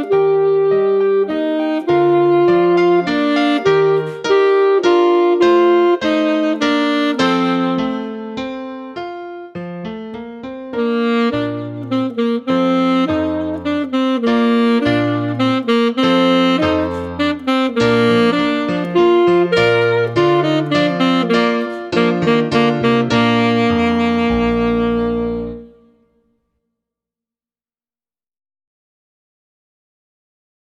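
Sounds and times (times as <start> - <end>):
baritone saxophone playing a minuet: 0.0 - 9.0, 10.4 - 26.2.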